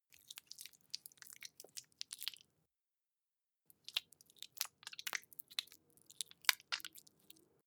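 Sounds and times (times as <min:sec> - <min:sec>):
Softsoap smeared on hands in a bathroom: 0:00.1 - 0:02.5, 0:03.8 - 0:07.4.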